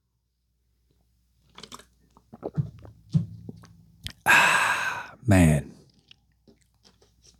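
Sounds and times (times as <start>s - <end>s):
drinking water, gulping swallows: 2.1s - 5.1s
faint mouth clicks: 4.0s - 5.2s
speech: 5.3s - 5.7s.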